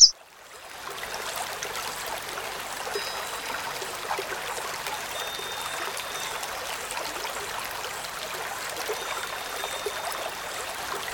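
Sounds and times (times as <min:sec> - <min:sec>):
Black-throated canary chirping and warbling: 0:00.3 - 0:11.1.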